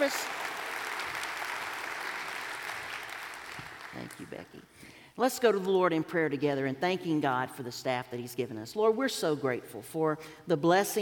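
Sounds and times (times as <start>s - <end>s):
speech: 0.0s - 0.4s, 3.9s - 11.0s
round of applause: 0.0s - 4.3s.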